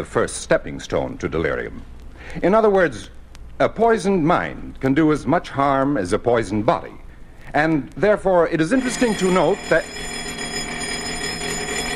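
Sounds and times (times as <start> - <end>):
speech: 0.0 - 10.2
bell ringing: 8.7 - 11.9.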